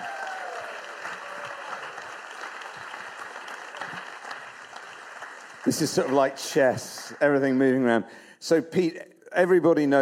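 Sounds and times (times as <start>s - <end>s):
audience applause welcoming a speaker to the stage: 0.0s - 7.6s
speech: 5.6s - 10.0s.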